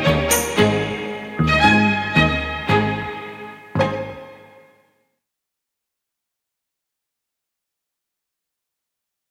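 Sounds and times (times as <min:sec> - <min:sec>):
tango music: 0:00.0 - 0:04.6.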